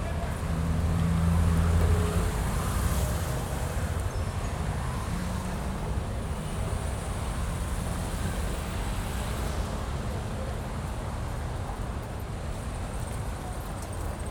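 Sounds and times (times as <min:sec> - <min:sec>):
city main street traffic ambience: 0:00.0 - 0:14.3.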